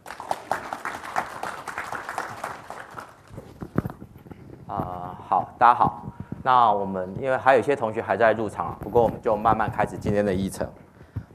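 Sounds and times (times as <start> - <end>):
audience applause: 0.0 - 3.4
speech: 4.7 - 10.8.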